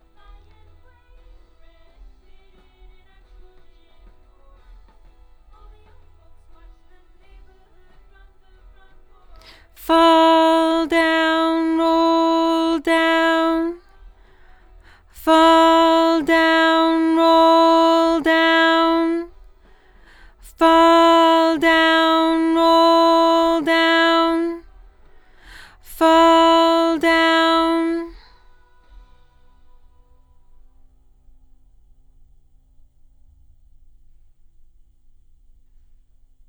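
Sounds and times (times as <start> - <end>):
doubled lead vocal: 9.5 - 13.8, 15.1 - 19.3, 20.4 - 24.6, 25.5 - 28.2.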